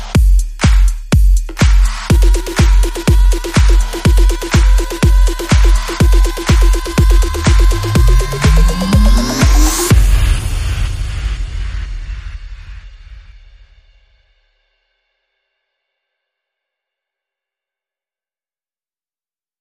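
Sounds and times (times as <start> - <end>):
music beat: 0.0 - 12.4.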